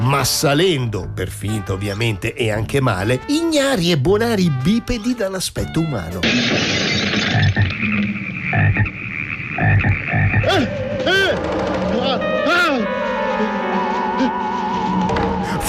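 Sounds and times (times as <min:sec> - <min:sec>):
speech: 0:00.1 - 0:06.8
frogs croaking: 0:07.0 - 0:10.6
swooping wavering tones: 0:07.4 - 0:15.6.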